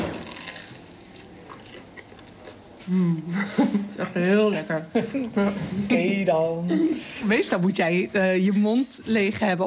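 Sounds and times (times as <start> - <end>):
person chewing fresh bread torn by hand and dipped in oil: 0.0 - 2.9
speech: 2.9 - 9.6
laughter: 3.3 - 6.0.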